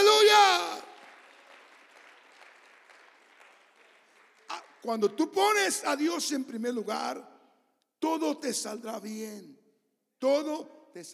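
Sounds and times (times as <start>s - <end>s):
audience applauding: 0.0s - 5.3s
speech: 4.8s - 7.3s, 8.0s - 9.6s, 10.2s - 11.1s.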